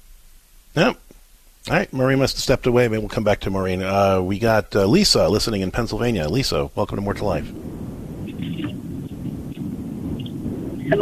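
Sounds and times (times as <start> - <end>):
faint higher hiss: 0.0 - 10.9
speech: 0.8 - 1.0, 1.7 - 7.7
car noise carried over a phone line: 7.1 - 10.9.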